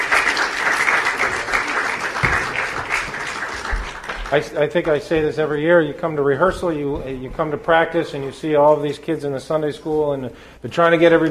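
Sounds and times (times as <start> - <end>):
audience applause: 0.0 - 4.9
speech: 4.3 - 11.2.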